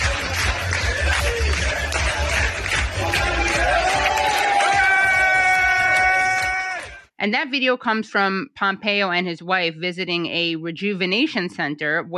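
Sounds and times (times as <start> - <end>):
crowd clapping along: 0.0 - 7.1
speech: 7.2 - 12.1.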